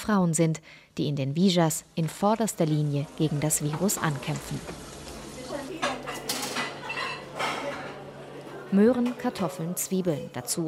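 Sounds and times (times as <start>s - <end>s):
speech: 0.0s - 5.0s, 8.7s - 10.6s
metal pots and cutlery clattering while cooking: 5.8s - 8.0s.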